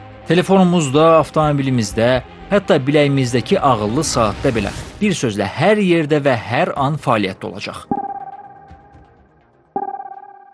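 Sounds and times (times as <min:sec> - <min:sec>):
speech: 0:00.3 - 0:08.0
electronic signal beep tones: 0:07.9 - 0:09.1, 0:09.8 - 0:10.5.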